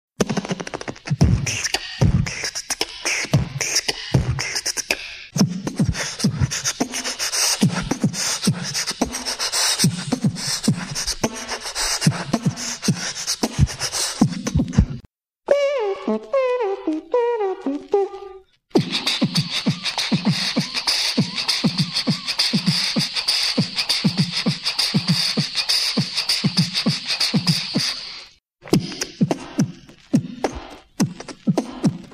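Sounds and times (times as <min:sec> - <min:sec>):
beatboxing: 0:00.2 - 0:32.1.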